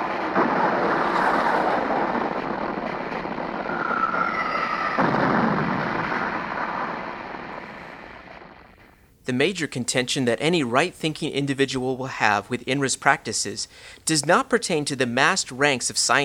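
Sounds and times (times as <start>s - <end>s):
battery guns firing on a mothership: 0.0s - 9.0s
speech: 9.3s - 16.2s.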